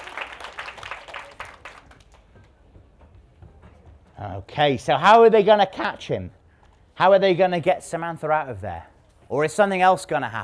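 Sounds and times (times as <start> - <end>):
audience clapping: 0.0 - 2.6
speech: 4.2 - 6.4, 7.0 - 10.4.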